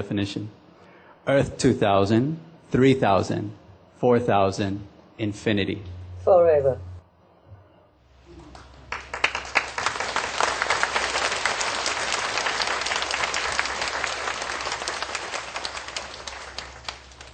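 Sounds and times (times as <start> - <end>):
speech: 0.0 - 0.6, 1.2 - 6.9
audience applause: 8.5 - 17.3.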